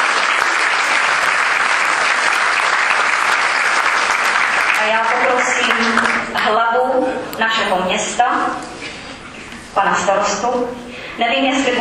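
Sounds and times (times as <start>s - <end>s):
audience applause: 0.0s - 6.4s
speech: 4.8s - 8.7s, 9.8s - 11.7s.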